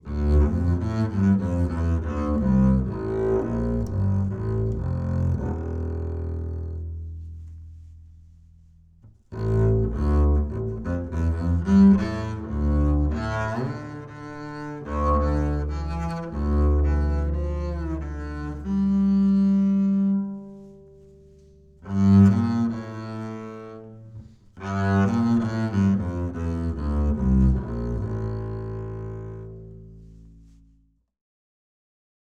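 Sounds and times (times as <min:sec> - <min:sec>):
bowed acoustic bass high mid: 0:00.0 - 0:30.9.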